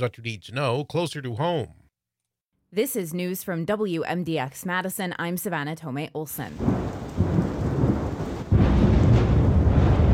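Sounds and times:
speech: 0:00.0 - 0:01.8, 0:02.7 - 0:07.0
loud thunder during storms in southern Wisconsin: 0:06.5 - 0:10.1.

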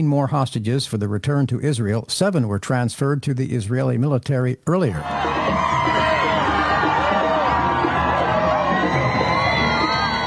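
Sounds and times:
speech: 0:00.0 - 0:06.1
large crowd cheering and shouting at hostage release: 0:05.0 - 0:10.2.

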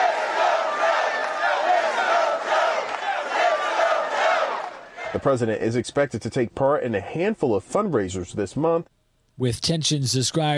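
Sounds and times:
rally crowd chanting in unison: 0:00.0 - 0:05.2
speech: 0:05.1 - 0:10.5.

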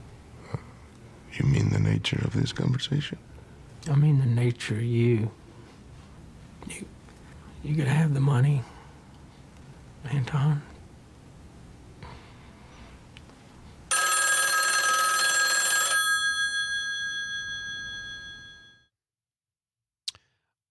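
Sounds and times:
speech: 0:01.4 - 0:05.4, 0:06.7 - 0:07.0, 0:07.6 - 0:08.7, 0:10.0 - 0:10.7
telephone ringing: 0:13.9 - 0:18.9.

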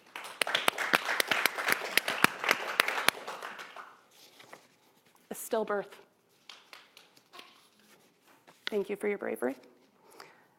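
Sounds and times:
audience applause: 0:00.0 - 0:04.0
speech: 0:05.3 - 0:06.1, 0:08.7 - 0:09.7.

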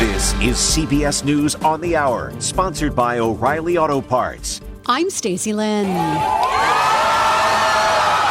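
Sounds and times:
speech: 0:00.2 - 0:06.9
crowd in Tel Aviv cheering as Hamas releases hostages: 0:05.8 - 0:08.2.

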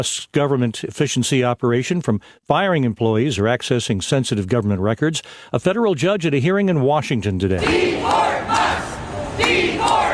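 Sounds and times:
speech: 0:00.0 - 0:08.6
protesters chanting at a rally in Tampa, Florida: 0:07.6 - 0:10.1.

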